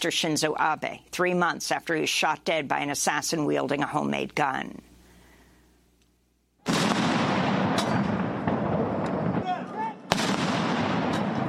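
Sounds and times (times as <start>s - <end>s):
speech: 0.0s - 4.9s
cannons firing a 19-gun salute: 6.6s - 11.4s.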